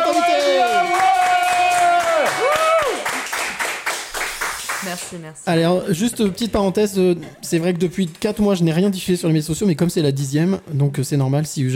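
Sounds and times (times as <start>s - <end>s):
applause: 0.0s - 5.2s
speech: 5.1s - 11.7s.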